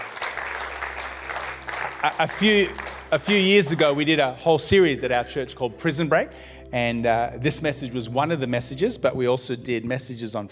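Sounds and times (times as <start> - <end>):
audience clapping: 0.0 - 4.4
speech: 2.0 - 10.5.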